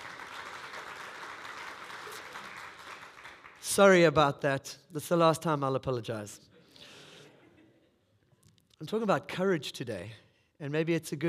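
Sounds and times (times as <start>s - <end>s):
round of applause: 0.0s - 3.8s
speech: 3.7s - 6.5s, 8.8s - 11.2s.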